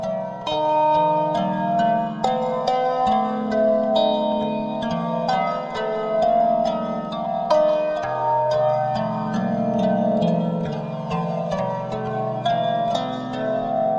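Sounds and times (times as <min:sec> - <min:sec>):
harp psaltery: 0:00.0 - 0:13.9.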